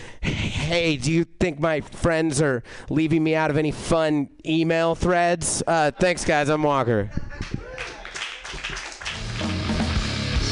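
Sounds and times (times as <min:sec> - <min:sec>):
speech: 0:00.7 - 0:07.5
audience clapping: 0:07.4 - 0:10.4.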